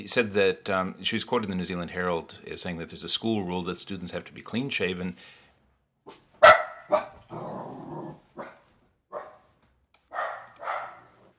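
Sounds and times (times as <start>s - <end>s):
speech: 0.0s - 5.4s
dog barking: 6.4s - 7.2s, 8.4s - 9.5s, 10.1s - 11.1s
dog growling: 7.3s - 8.6s.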